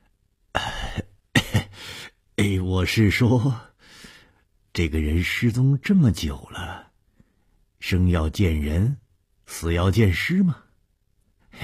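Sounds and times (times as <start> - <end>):
old man's awkward cough with throat-clearing: 0.6 - 1.9
speech: 2.8 - 3.7, 4.8 - 6.8, 7.8 - 10.6.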